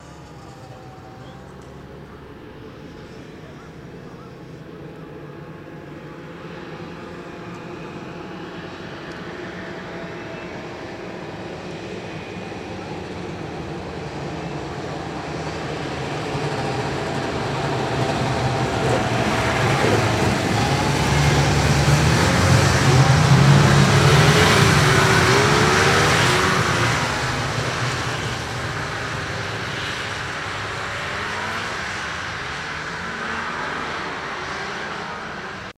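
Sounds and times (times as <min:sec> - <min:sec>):
snowmobile passing by: 0:15.5 - 0:35.7.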